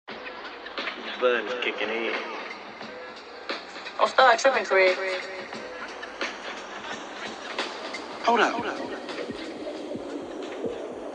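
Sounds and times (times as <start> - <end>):
constant hiss: 0.8 - 11.1
speech: 1.2 - 2.4, 4.0 - 5.6, 8.2 - 9.0
heartbeat at a clinic: 2.6 - 11.1.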